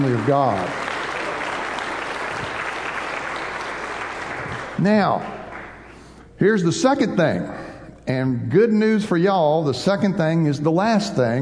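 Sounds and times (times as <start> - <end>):
speech: 0.0 - 0.8, 4.8 - 5.3, 6.4 - 11.3
audience applause: 0.0 - 5.9.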